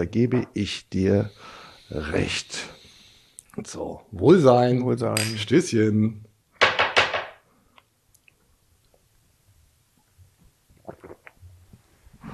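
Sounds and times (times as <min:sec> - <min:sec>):
speech: 0:00.0 - 0:02.8, 0:03.6 - 0:06.3
loud swallowing while drinking after a toast: 0:10.8 - 0:11.4.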